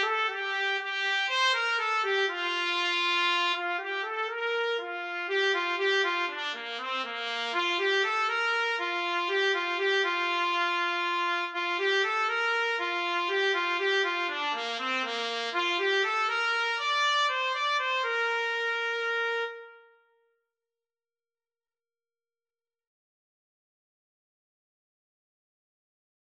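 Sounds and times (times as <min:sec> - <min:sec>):
trumpet: 0:00.0 - 0:20.2.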